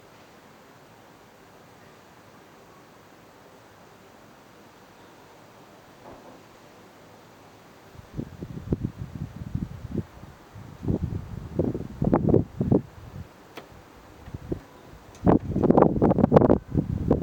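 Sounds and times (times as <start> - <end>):
outdoor ambience: 0.0 - 17.2.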